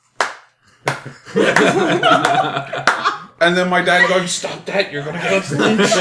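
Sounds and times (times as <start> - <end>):
hand claps in a theater: 0.1 - 3.1
speech: 1.0 - 6.0
voices and laughter: 1.2 - 6.0.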